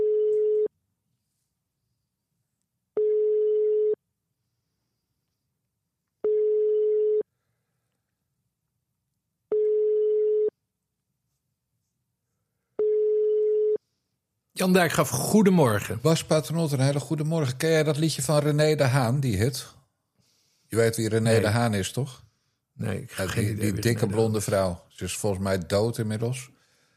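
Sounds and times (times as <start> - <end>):
telephone call tone: 0.0 - 0.7, 3.0 - 4.0, 6.2 - 7.3, 9.5 - 10.5, 12.8 - 13.8
speech: 14.6 - 19.8, 20.7 - 26.6.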